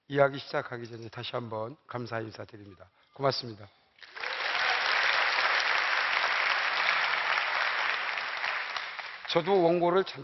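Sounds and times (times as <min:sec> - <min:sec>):
speech: 0:00.1 - 0:03.8, 0:09.3 - 0:10.2
warm audience applause: 0:04.0 - 0:09.8.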